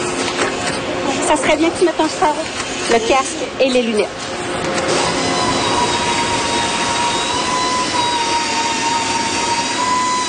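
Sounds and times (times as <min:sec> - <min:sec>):
loud steel factory machinery roar: 0:00.0 - 0:10.2
speech: 0:01.3 - 0:04.7
steady high whining tones: 0:02.9 - 0:10.2.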